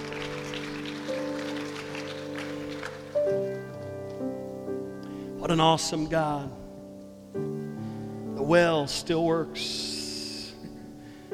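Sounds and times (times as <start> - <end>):
audience clapping: 0.0 - 4.2
organ-like chords: 0.0 - 11.3
speech: 5.5 - 6.6, 8.5 - 9.9.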